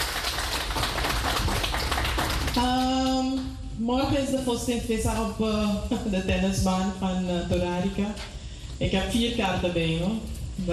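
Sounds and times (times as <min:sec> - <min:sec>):
applause for the panel: 0:00.0 - 0:03.5
speech: 0:02.6 - 0:10.7.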